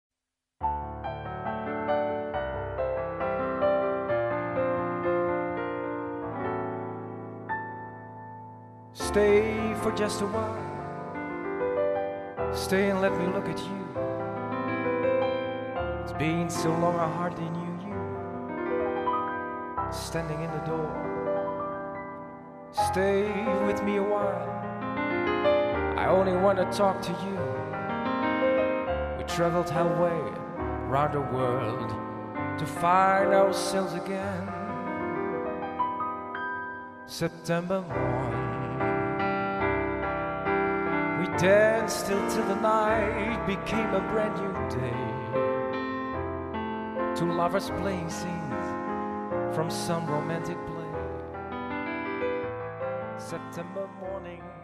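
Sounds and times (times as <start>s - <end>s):
piano: 0.6s - 54.6s.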